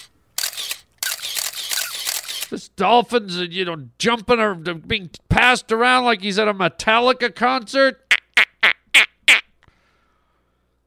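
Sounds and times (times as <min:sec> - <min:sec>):
camera shutter clicks: 0:00.0 - 0:02.6
speech: 0:02.5 - 0:08.1.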